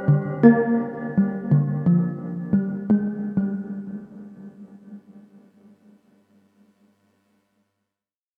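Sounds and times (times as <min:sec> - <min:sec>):
synth: 0:00.0 - 0:05.5.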